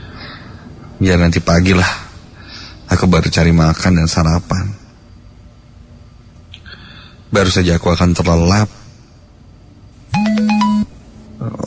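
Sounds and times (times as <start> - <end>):
speech: 1.0 - 2.0, 2.9 - 4.8, 7.3 - 8.8
mobile phone SMS message ringtone in a bedroom at night: 10.1 - 10.9.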